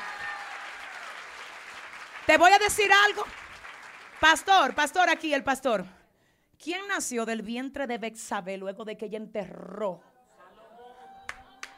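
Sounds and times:
audience applause: 0.0s - 4.8s, 11.2s - 11.7s
speech: 2.3s - 3.4s, 4.2s - 6.0s, 6.6s - 10.1s.

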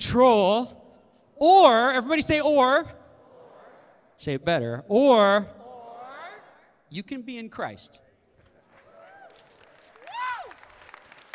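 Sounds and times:
speech: 0.1s - 0.8s, 1.4s - 3.0s, 4.2s - 5.6s, 6.9s - 8.0s
people clapping: 8.3s - 11.3s.

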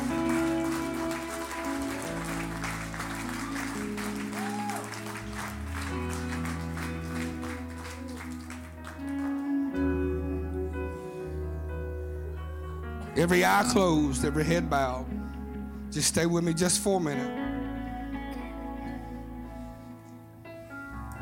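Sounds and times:
audience clapping: 0.0s - 9.9s
sustained organ-like chords: 0.0s - 18.2s
low bass line: 0.0s - 19.6s
speech: 13.2s - 15.2s, 16.0s - 17.4s.

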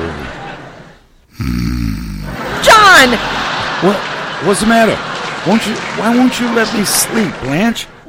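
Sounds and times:
laughter: 0.0s - 1.0s, 2.1s - 8.0s
man snoring loudly in his sleep: 1.3s - 2.4s
speech: 1.4s - 8.0s.

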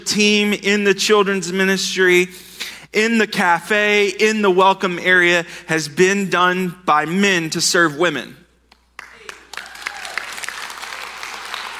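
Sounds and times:
speech: 0.1s - 8.4s
large crowd applause: 9.0s - 11.7s.

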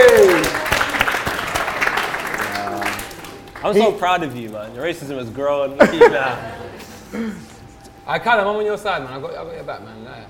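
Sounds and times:
live recording audience clapping for the cameraman: 0.0s - 4.4s
speech: 3.7s - 7.5s, 8.1s - 10.2s
laughter: 5.7s - 7.7s.

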